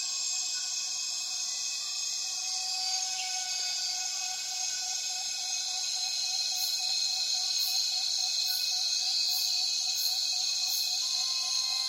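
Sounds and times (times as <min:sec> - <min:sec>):
cicadas buzzing: 0:00.1 - 0:11.8.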